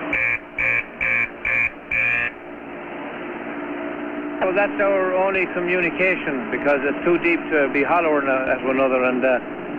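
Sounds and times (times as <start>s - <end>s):
mine shaft signal beeps: 0.0s - 2.4s
speech: 4.4s - 9.6s.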